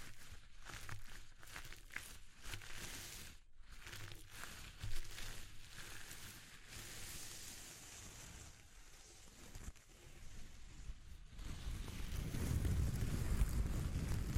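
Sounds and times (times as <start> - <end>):
textures rubbed and crinkled: 0.0 - 14.3
blustery rumble like wind on the microphone: 10.9 - 14.3.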